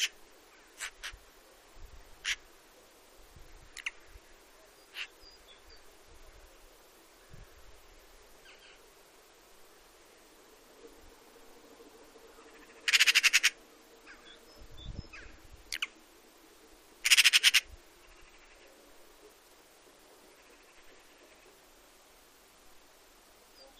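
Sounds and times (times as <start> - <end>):
Eurasian magpie harsh calls and rattling chatter: 0.8 - 1.2, 3.8 - 4.0, 4.9 - 5.1, 12.5 - 14.4, 15.1 - 15.9, 17.0 - 18.6.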